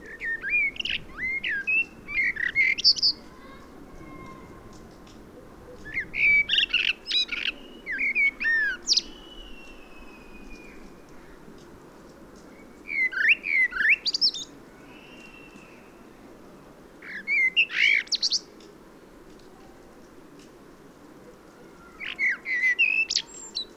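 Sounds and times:
common blackbird Turdus merula singing: 0.0s - 3.6s, 5.7s - 11.4s, 12.4s - 16.2s, 17.0s - 18.6s, 21.6s - 23.7s.

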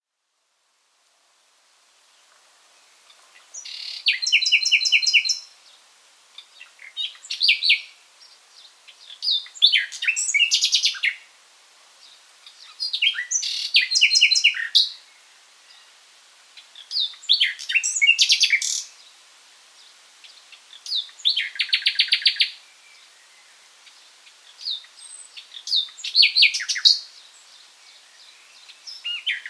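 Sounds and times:
Common nightingale Luscinia megarhynchos singing: 3.0s - 5.8s, 6.4s - 11.3s, 12.0s - 15.9s, 16.6s - 19.1s, 19.8s - 29.4s.

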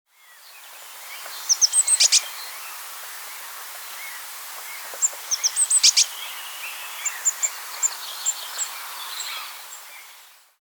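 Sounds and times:
background hiss: 0.1s - 10.6s
Eurasian blue tit calling: 1.2s - 2.4s, 4.0s - 10.0s.

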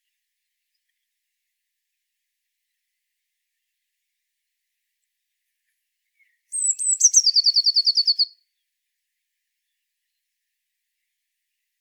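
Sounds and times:
Eurasian blue tit song: 6.2s - 8.3s.

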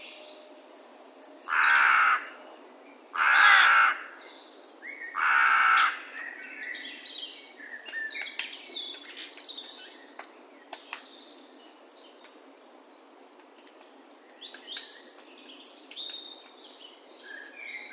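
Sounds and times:
carrion crow cawing coarsely: 1.5s - 2.4s, 3.2s - 4.2s, 5.2s - 6.1s.

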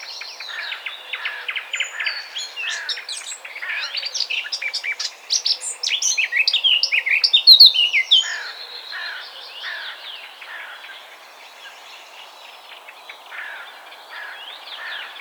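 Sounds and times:
Eurasian blackcap song: 0.0s - 8.8s.

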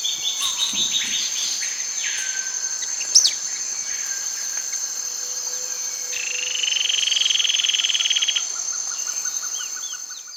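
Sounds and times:
bird fast buzzy trill: 0.0s - 4.9s
constant high insect drone: 0.0s - 10.3s.

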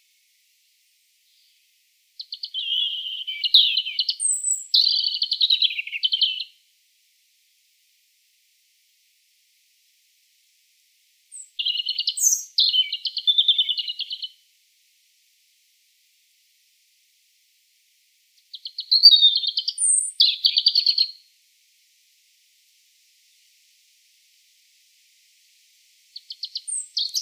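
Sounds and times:
European robin song with trills and whistles: 1.3s - 6.6s, 11.3s - 14.4s, 18.4s - 21.3s, 26.1s - 27.2s.

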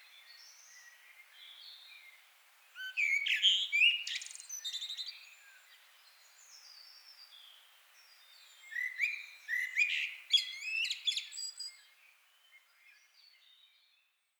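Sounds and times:
common blackbird song: 0.0s - 14.2s.

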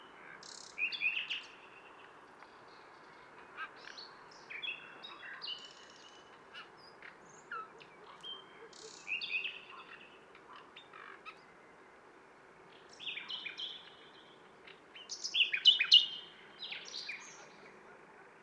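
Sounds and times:
nightingale-type song: 0.0s - 18.4s.

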